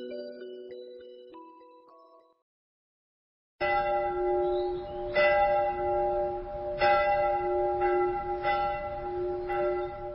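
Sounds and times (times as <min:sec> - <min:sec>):
distant church bells ringing: 0:03.6 - 0:10.1.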